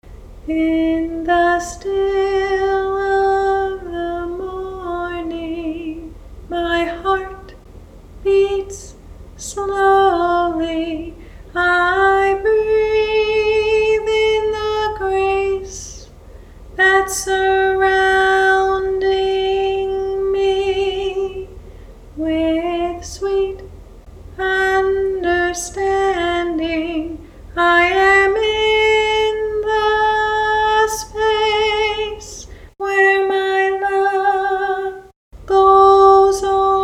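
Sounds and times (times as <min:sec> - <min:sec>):
solo high harmony vocal: 0:00.4 - 0:16.2, 0:16.8 - 0:36.8.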